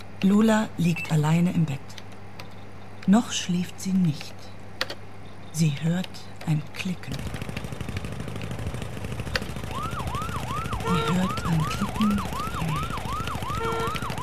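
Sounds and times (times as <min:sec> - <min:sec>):
speech: 0:00.2 - 0:02.0, 0:03.1 - 0:04.6, 0:05.6 - 0:07.6, 0:10.9 - 0:13.0, 0:13.6 - 0:14.1
fire engine siren: 0:09.6 - 0:14.2.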